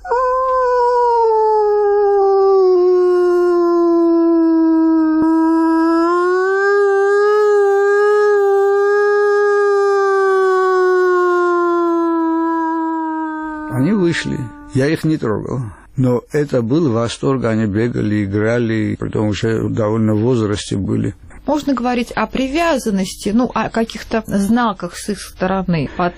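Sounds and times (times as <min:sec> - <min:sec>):
person imitating wolf howl: 0:00.0 - 0:14.9
speech: 0:14.8 - 0:26.1.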